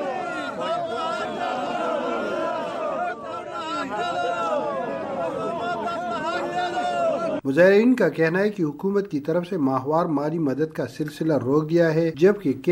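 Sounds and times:
displaced North Waziristan tribespeople protesting in Bannu, chanting and shouting: 0:00.0 - 0:07.5
speech: 0:07.4 - 0:12.7.

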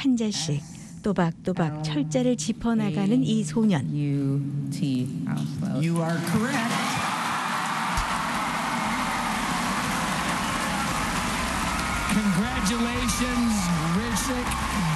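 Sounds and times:
speech: 0:00.0 - 0:07.0, 0:12.6 - 0:14.9
people clapping: 0:06.1 - 0:14.9
people cheering: 0:06.2 - 0:14.9.

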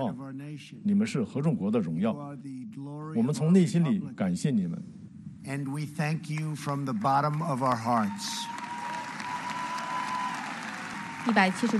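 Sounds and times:
speech: 0:00.0 - 0:08.6, 0:11.2 - 0:11.7
large audience applause: 0:06.3 - 0:11.7.

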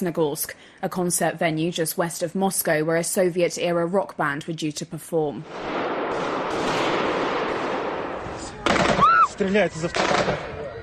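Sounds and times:
speech: 0:00.0 - 0:06.8, 0:09.4 - 0:10.6
automatic machine gun fire: 0:05.4 - 0:09.2, 0:09.8 - 0:10.5
people shouting: 0:08.4 - 0:09.5.

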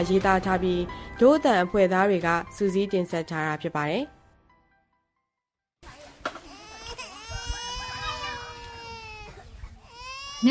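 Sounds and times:
speech: 0:00.0 - 0:04.2
two-year-old child crying inside a tent in a refugee camp: 0:06.5 - 0:10.4.

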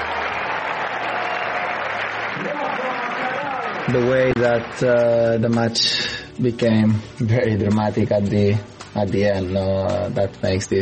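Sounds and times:
tennis crowd applause in New York: 0:00.0 - 0:05.5
speech: 0:03.9 - 0:10.8.

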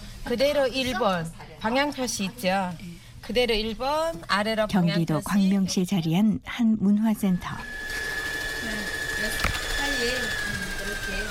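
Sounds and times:
speech: 0:00.2 - 0:07.8
sewing machine running: 0:07.5 - 0:11.3.

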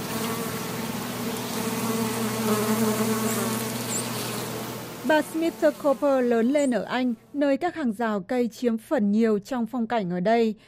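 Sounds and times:
native bees buzzing: 0:00.0 - 0:07.1
speech: 0:05.1 - 0:10.6.

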